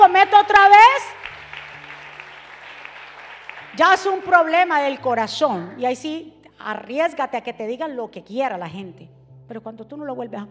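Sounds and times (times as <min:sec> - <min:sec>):
speech: 0:00.0 - 0:00.8, 0:03.8 - 0:10.4
audience applause: 0:00.3 - 0:04.2.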